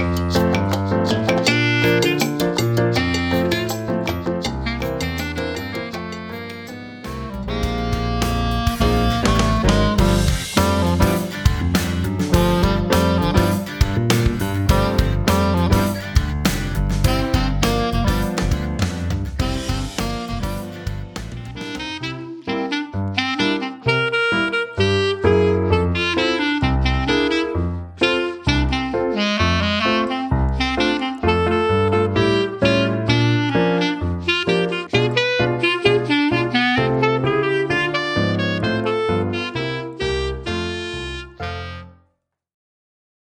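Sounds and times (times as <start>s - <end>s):
piano: 0.0s - 41.9s
clarinet: 0.0s - 42.1s.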